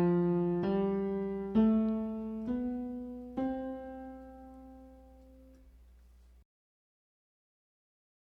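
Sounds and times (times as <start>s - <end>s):
left hand exercise played: 0.0s - 6.4s.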